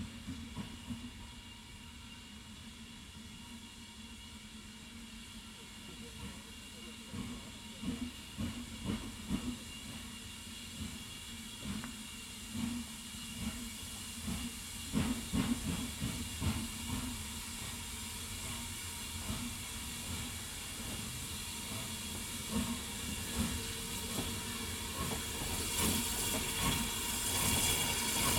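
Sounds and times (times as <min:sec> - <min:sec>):
steam train chugging at Grosmont in North Yorkshire: 0:00.0 - 0:28.3.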